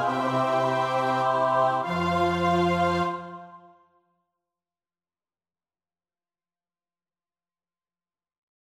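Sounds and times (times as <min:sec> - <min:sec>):
SATB choir part practice: 0:00.0 - 0:03.8.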